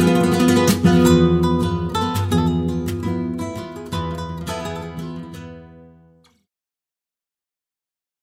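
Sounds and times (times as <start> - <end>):
flamenco guitar playing a rumba: 0.0 - 6.4.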